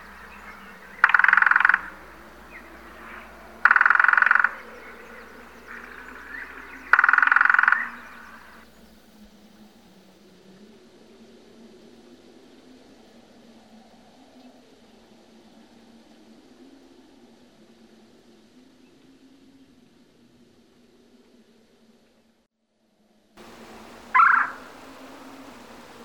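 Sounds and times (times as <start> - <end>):
woodpecker: 0.0 - 8.6, 23.7 - 25.5.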